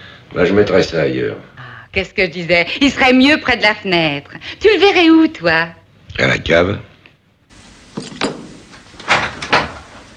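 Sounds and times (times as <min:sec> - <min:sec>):
speech: 0:00.3 - 0:06.9
door opening as someone enters the room: 0:07.9 - 0:10.1.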